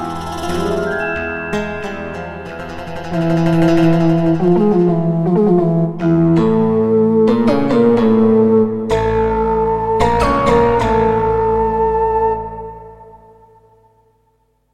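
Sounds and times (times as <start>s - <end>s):
synthesizer module intro music: 0.0s - 13.2s.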